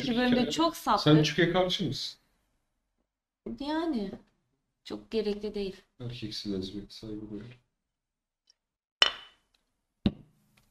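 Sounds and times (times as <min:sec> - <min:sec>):
speech: 0:00.0 - 0:02.2, 0:03.4 - 0:07.6
object banged on a table: 0:09.0 - 0:09.4.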